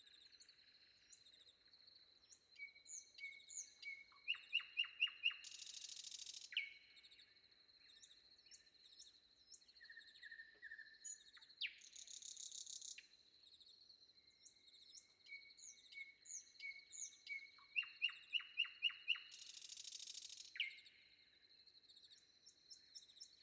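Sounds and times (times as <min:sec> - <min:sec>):
nightingale singing before dawn: 0:02.3 - 0:06.9, 0:07.8 - 0:13.1, 0:14.4 - 0:21.1.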